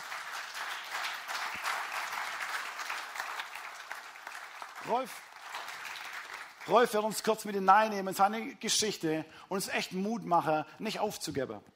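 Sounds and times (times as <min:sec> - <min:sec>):
audience applause: 0:00.0 - 0:07.0
speech: 0:04.8 - 0:05.3, 0:06.6 - 0:11.7.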